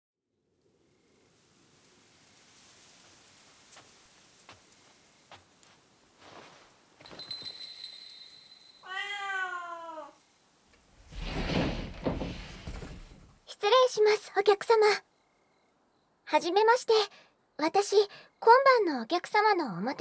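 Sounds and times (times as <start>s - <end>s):
hissing rain-like noise: 0.5s - 14.2s
cat meowing: 8.8s - 10.3s
speech: 13.9s - 15.1s, 16.3s - 19.9s.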